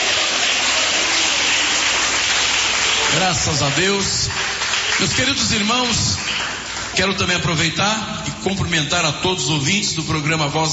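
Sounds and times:
audience clapping hands: 0.0 - 8.0
speech: 3.2 - 6.4, 7.0 - 10.7.

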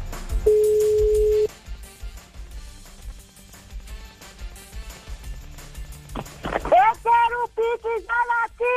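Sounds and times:
telephone ringing tone: 0.5 - 1.5
busy sound: 6.0 - 8.6.

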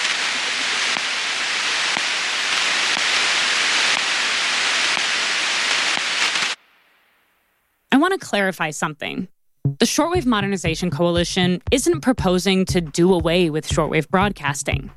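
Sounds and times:
static and blips of computer data transmission: 0.0 - 7.0
speech: 8.0 - 14.9.

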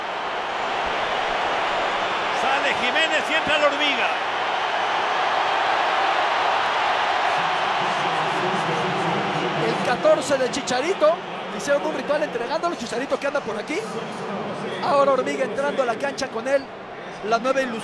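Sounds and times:
stadium crowd ovation: 0.0 - 17.8
speech: 2.7 - 4.3, 9.9 - 17.8.

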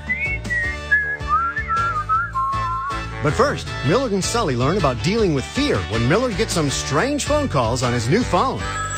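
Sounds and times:
whistled melody of wild whistling creatures: 0.0 - 3.2
speech: 3.2 - 8.8.

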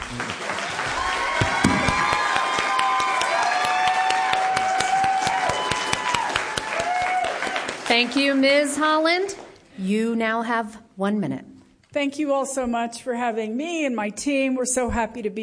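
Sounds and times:
audience applause: 0.0 - 8.8
speech: 7.9 - 15.4.

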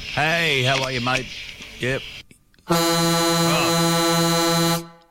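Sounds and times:
speech: 0.2 - 2.1, 2.7 - 3.6
loud vehicle horn blaring: 2.7 - 5.0.

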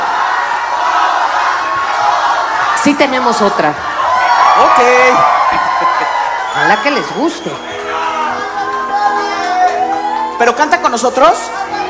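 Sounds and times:
crowd shouting and cheering: 0.0 - 11.8
laughter: 0.0 - 11.8
speech: 2.8 - 3.9, 4.6 - 7.8, 10.4 - 11.8.

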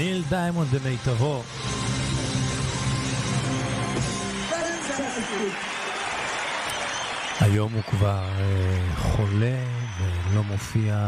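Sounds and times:
speech: 0.2 - 1.8, 5.1 - 5.8, 7.4 - 11.0
concert audience applauding at a club in Athens: 3.1 - 11.0.

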